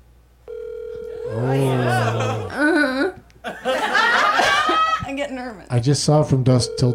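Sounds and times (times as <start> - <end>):
electronic telephone tone on speakerphone after a call placed through Siri: 0.4 - 1.7, 6.6 - 6.9
laughter: 1.7 - 5.1
speech: 5.7 - 6.9.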